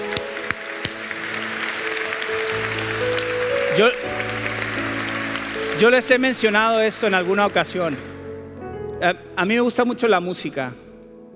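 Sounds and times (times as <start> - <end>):
audience applauding: 0.0 - 8.4
speech: 3.8 - 4.1, 5.8 - 8.1, 9.0 - 10.8.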